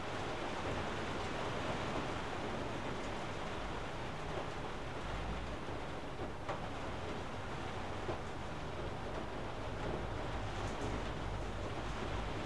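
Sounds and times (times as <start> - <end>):
rain in an attic: 0.0 - 12.4.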